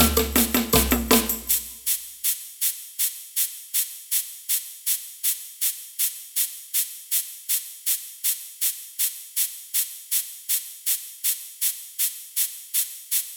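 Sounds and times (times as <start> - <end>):
samba band playing: 0.0 - 1.6
ganza shaker in samba band: 0.0 - 13.3.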